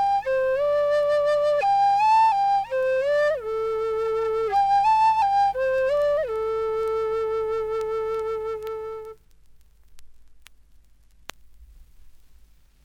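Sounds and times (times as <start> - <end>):
jazz flute: 0.0 - 9.2.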